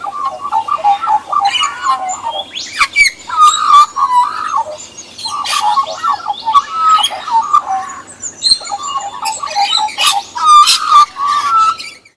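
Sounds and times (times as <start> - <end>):
magpie singing: 0.0 - 12.1.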